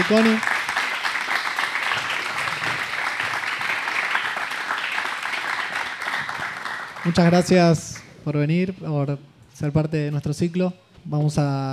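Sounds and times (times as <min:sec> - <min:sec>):
speech: 0:00.0 - 0:00.5, 0:07.0 - 0:11.7
audience applause: 0:00.0 - 0:07.5.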